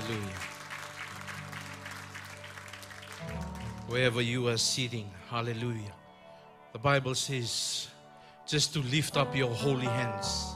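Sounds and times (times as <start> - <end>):
crowd clapping hands: 0.0 - 4.2
speech: 3.9 - 6.0, 6.8 - 10.5.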